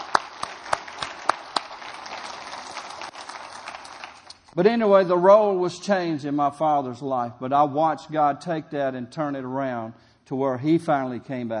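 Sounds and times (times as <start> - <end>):
audience clapping: 0.0 - 4.5
speech: 4.6 - 11.5.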